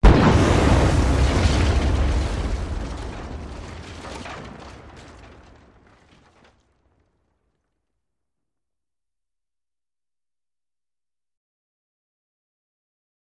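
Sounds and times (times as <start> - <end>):
explosion: 0.0 - 7.3
wood debris falling: 0.0 - 7.7.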